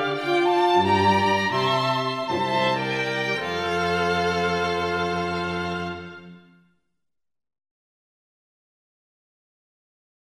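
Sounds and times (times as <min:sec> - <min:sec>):
instrumental music: 0:00.0 - 0:06.8.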